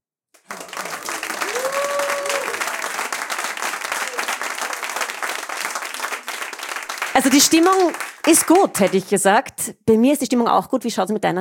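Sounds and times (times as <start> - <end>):
live audience applause and cheering: 0.4 - 9.1
speech: 7.2 - 11.3.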